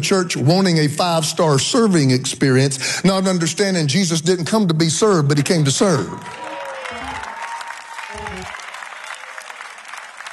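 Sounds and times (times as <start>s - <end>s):
speech: 0.0s - 6.4s
audience clapping: 5.8s - 10.3s
low voice-like sounds: 8.0s - 8.6s.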